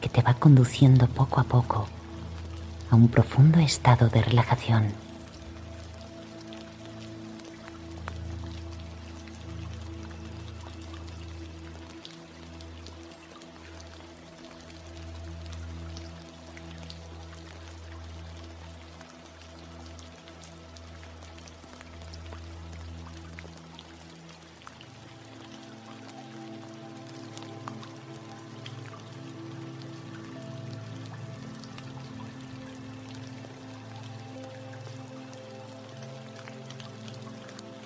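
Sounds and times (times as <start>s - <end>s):
speech: 0.0s - 2.0s, 2.9s - 5.0s
rain falling: 0.0s - 37.8s.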